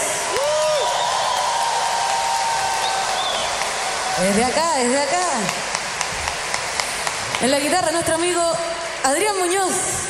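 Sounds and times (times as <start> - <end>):
audience applause: 0.1 - 7.5
speech: 4.2 - 5.7, 7.4 - 10.0.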